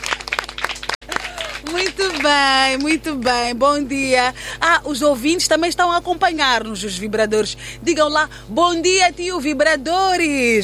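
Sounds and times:
young children clapping during a morning show: 0.0 - 3.0
speech: 1.6 - 10.6.

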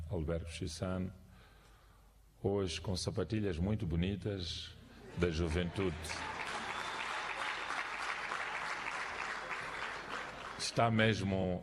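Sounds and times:
speech: 0.1 - 1.2, 2.4 - 6.4, 10.7 - 11.6
audience applause: 5.2 - 10.8.

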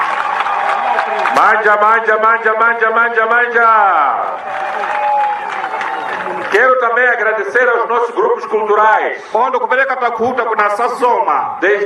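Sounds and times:
rally crowd applauding: 0.0 - 2.0, 3.6 - 7.4
speech: 1.4 - 5.0, 6.5 - 11.8.

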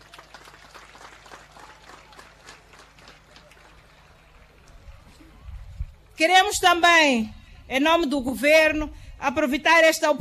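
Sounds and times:
large crowd clapping for referees and coaches: 0.0 - 5.3
speech: 6.2 - 10.1.

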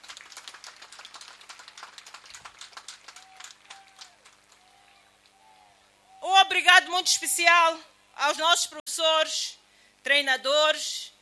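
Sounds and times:
audience applause: 0.0 - 5.0
speech: 6.6 - 11.1.

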